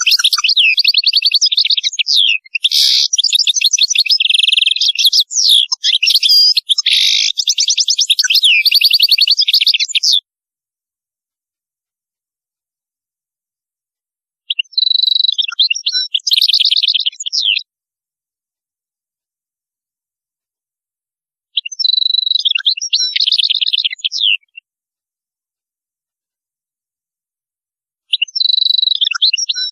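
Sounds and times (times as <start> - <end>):
European goldfinch singing: 0.0 - 10.2, 14.5 - 17.6, 21.6 - 24.6, 28.1 - 29.6.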